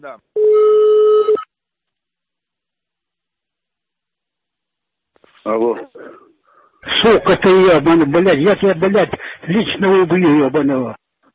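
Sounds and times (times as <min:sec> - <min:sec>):
speech: 0:00.0 - 0:00.7, 0:05.4 - 0:06.2, 0:06.8 - 0:11.0
electronic telephone tone: 0:00.4 - 0:01.5.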